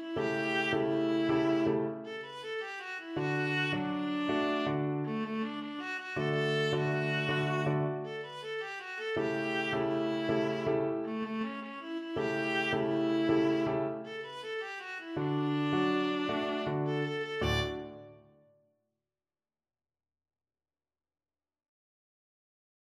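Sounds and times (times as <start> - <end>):
viola: 0.0 - 18.3.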